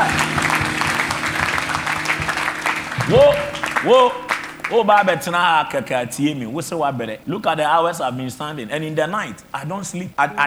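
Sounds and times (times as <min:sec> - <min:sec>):
audience clapping: 0:00.0 - 0:05.9
speech: 0:03.1 - 0:10.4.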